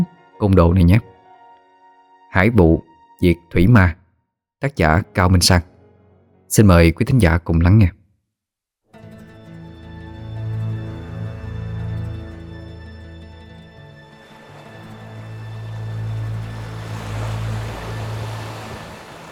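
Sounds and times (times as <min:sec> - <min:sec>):
speech: 0:00.0 - 0:01.1, 0:02.3 - 0:04.0, 0:04.6 - 0:05.7, 0:06.5 - 0:08.0
ocean waves surging around a lone small boat on the open sea at sunset: 0:13.3 - 0:19.3.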